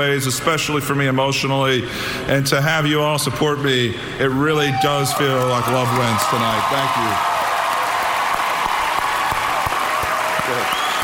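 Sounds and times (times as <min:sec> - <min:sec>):
speech: 0:00.0 - 0:07.3
audience applause: 0:05.1 - 0:11.0.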